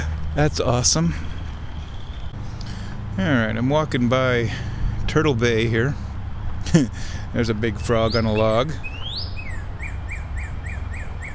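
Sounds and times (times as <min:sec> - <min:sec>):
cardinals calling: 0:00.0 - 0:11.3
speech: 0:00.4 - 0:01.4, 0:03.2 - 0:06.0, 0:06.7 - 0:08.9.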